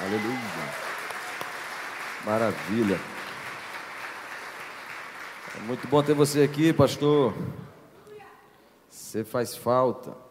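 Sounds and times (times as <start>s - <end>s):
audience applause: 0.0s - 6.8s
speech: 0.1s - 0.9s, 2.2s - 3.1s, 5.6s - 7.7s, 9.1s - 10.2s.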